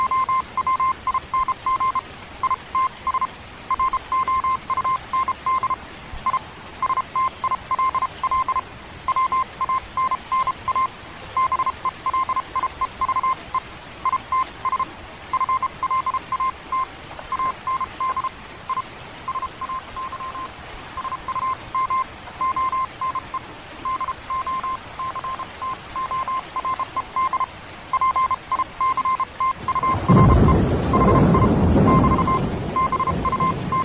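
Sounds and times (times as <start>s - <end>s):
rain: 0.0s - 33.8s
storm: 29.4s - 33.8s.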